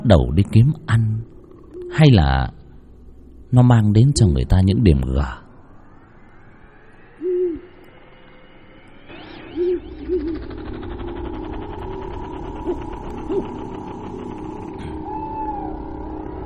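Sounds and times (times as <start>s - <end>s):
speech: 0.1s - 1.2s, 1.9s - 2.6s, 3.5s - 5.4s
owl hooting at night: 6.9s - 16.4s.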